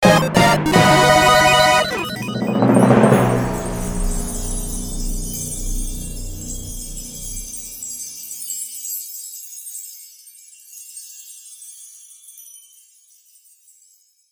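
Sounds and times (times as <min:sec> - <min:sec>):
item get wow jingle: 0:00.0 - 0:07.6.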